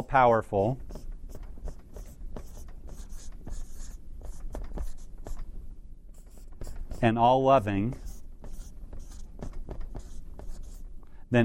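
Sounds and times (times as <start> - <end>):
speech: 0.0 - 1.0, 7.0 - 8.0
handwriting scratching: 0.8 - 5.5, 6.1 - 7.2, 7.9 - 10.9.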